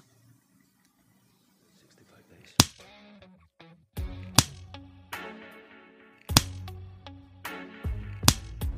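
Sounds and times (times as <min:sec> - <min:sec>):
hand slaps of a spanking: 0:02.6 - 0:02.9, 0:04.2 - 0:04.8, 0:06.3 - 0:06.7, 0:08.2 - 0:08.7.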